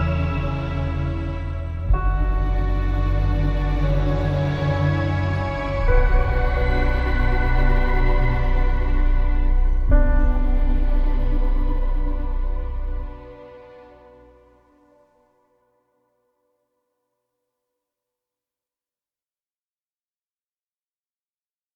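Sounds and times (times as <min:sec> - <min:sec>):
bereavement ambient music: 0:00.0 - 0:16.4.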